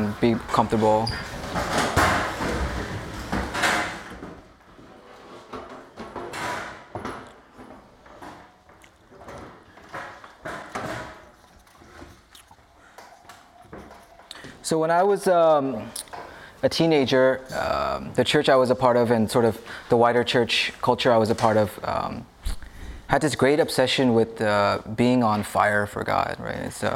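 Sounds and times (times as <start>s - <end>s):
chairs being turned around scraping across the floor: 0.0s - 12.2s
speech: 0.2s - 1.3s, 14.7s - 16.0s, 16.6s - 22.3s, 23.1s - 26.9s.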